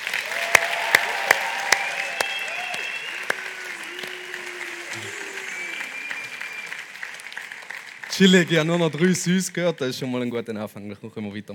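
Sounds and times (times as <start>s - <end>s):
faint whistles or cheers: 0.0s - 8.6s
audience applause: 0.0s - 9.6s
speech: 8.2s - 11.5s.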